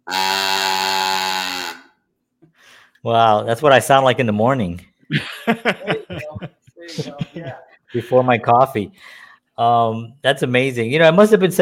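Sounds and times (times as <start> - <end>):
cow moo noisemaker toy: 0.0 - 1.9
speech: 3.0 - 11.6
laughter: 5.1 - 8.4.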